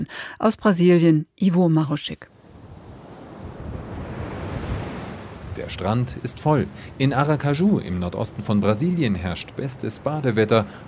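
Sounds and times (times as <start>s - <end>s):
speech: 0.0s - 2.3s, 5.6s - 10.8s
surf breaking on a beach at Aracaju in northeastern Brazil: 2.3s - 10.8s.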